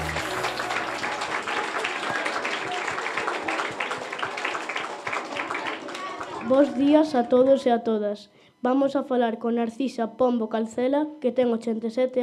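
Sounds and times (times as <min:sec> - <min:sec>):
audience applause: 0:00.0 - 0:06.8
speech: 0:06.5 - 0:12.2.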